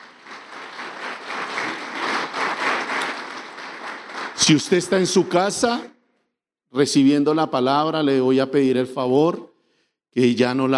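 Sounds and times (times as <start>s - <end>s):
audience applause: 0.0s - 5.6s
speech: 4.4s - 5.9s, 6.7s - 9.5s, 10.1s - 10.7s.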